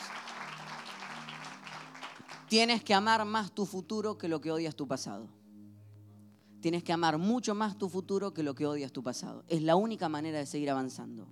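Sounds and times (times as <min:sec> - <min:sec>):
crowd applauding: 0:00.0 - 0:02.6
speech: 0:02.5 - 0:05.4, 0:06.6 - 0:11.3.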